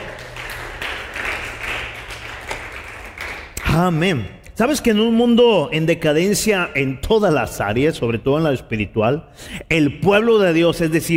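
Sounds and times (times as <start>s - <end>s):
audience applauding: 0.0s - 3.8s
speech: 3.8s - 11.1s.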